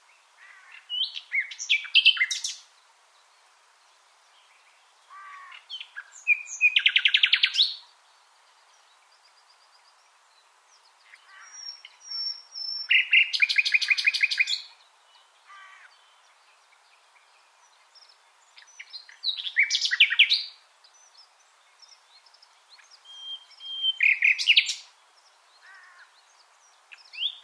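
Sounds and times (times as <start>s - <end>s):
common nightingale song: 0.0s - 27.4s.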